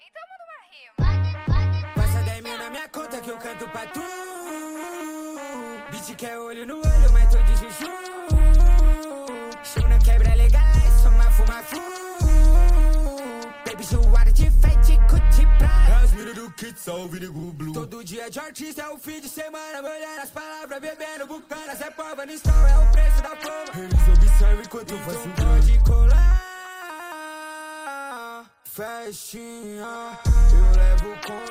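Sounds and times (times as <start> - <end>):
trap beat with deep bass: 1.0 - 2.8, 6.0 - 16.4, 21.7 - 26.4, 30.2 - 31.4.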